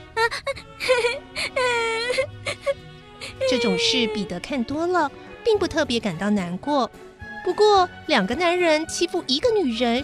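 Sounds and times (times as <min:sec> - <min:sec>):
frightened girl Wendy crying in fright: 0:00.1 - 0:04.4
speech: 0:00.3 - 0:01.1, 0:03.5 - 0:10.0.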